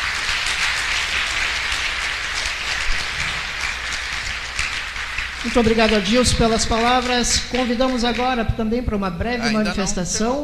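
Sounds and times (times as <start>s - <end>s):
audience applause: 0.0s - 8.3s
speech: 5.4s - 10.4s.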